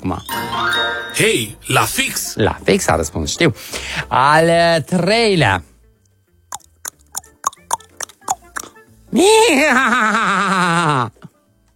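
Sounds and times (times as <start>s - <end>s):
speech: 0.0s - 5.7s, 9.1s - 11.2s
person making tongue clicks imitating a horse: 6.5s - 8.8s
laughter: 9.4s - 11.3s.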